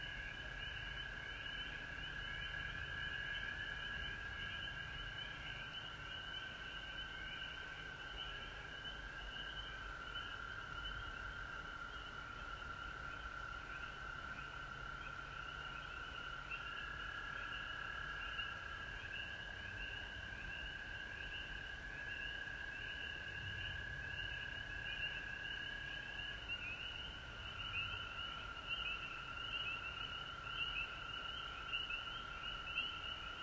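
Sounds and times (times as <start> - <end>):
frog chorus: 0.0 - 33.4.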